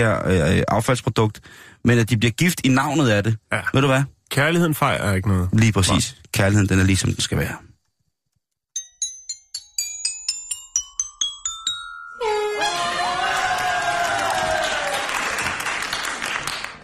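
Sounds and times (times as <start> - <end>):
speech: 0.0 - 7.7
bright ringing chime notes: 8.8 - 13.0
loud crowd cheering and whooping: 12.3 - 15.9.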